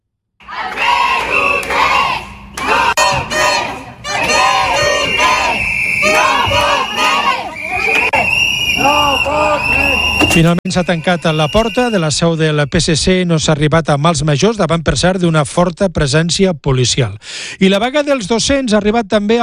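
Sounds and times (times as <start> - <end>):
protesters chanting and shouting: 0.4 - 10.4
speech: 10.4 - 19.4.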